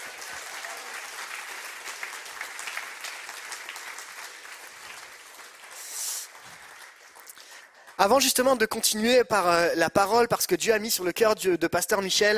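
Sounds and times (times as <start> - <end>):
audience applause: 0.0 - 8.2
speech: 8.0 - 12.3.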